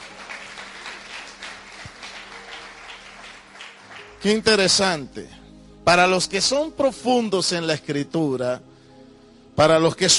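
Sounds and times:
audience applauding: 0.0 - 4.4
speech: 4.2 - 8.7, 9.6 - 10.1.

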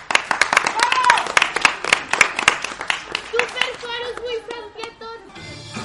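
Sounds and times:
applause: 0.0 - 4.6.

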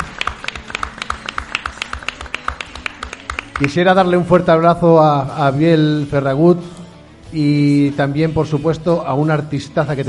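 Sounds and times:
audience applause: 0.0 - 3.7
speech: 3.6 - 10.0.

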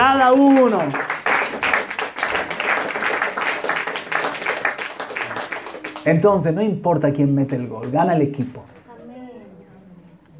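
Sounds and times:
crowd clapping: 0.0 - 8.2
speech: 0.1 - 1.2, 6.0 - 8.7.

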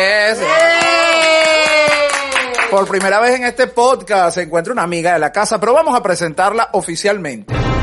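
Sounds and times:
speech: 0.0 - 0.6, 2.7 - 7.7
audience applause: 0.3 - 3.2.

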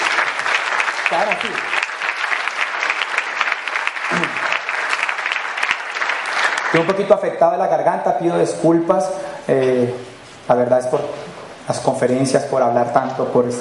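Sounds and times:
audience applause: 0.0 - 7.2
speech: 1.2 - 1.8, 6.7 - 13.6.

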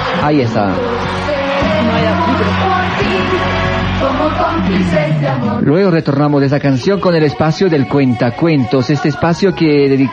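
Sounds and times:
crowd cheering and whooping: 0.0 - 5.6
crowd applauding: 0.0 - 7.3
speech: 0.2 - 10.1.

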